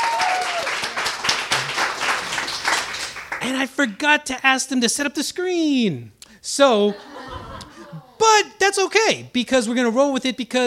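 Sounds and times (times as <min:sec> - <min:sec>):
whistle or cheer: 0:00.0 - 0:00.8
crowd applauding: 0:00.0 - 0:03.6
speech: 0:03.4 - 0:07.2, 0:08.2 - 0:10.6
laughter: 0:06.8 - 0:08.2.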